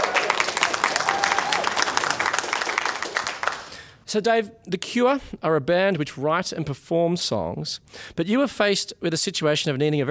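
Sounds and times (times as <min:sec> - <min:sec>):
audience applause: 0:00.0 - 0:03.9
speech: 0:04.1 - 0:10.0.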